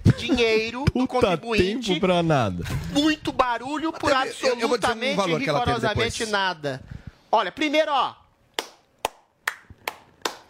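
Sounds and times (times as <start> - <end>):
speech: 0.2 - 8.2
hand claps: 8.6 - 10.4.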